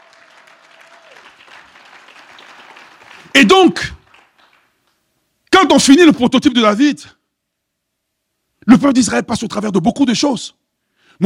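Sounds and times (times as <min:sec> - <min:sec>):
congregation clapping during a church sermon: 0:00.0 - 0:05.0
speech: 0:03.3 - 0:04.0, 0:05.7 - 0:07.2, 0:08.7 - 0:10.6.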